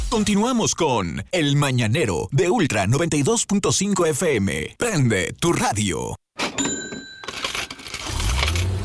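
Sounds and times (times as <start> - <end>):
speech: 0.1 - 6.9
coins clinking and jingling: 6.4 - 8.7.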